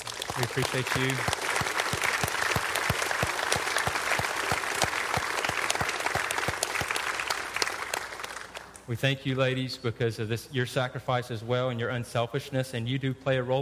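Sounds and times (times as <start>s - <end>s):
audience round of applause: 0.0s - 8.8s
speech: 0.4s - 1.4s, 8.9s - 13.6s.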